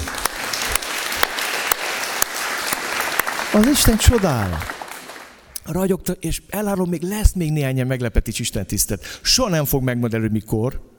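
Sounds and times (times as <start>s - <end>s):
audience applause: 0.0s - 5.4s
speech: 3.5s - 4.8s, 5.7s - 10.9s.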